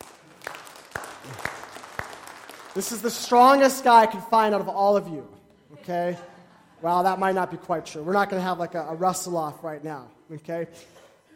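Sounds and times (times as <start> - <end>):
audience clapping to welcome a volunteer onto a stage: 0.0 - 3.7
speech: 2.8 - 11.0.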